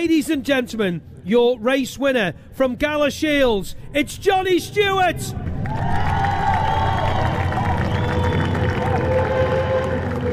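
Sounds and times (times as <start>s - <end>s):
speech: 0.0s - 5.8s
large grandstand crowd applauding and cheering: 5.3s - 10.3s
faint whistles: 6.5s - 10.3s.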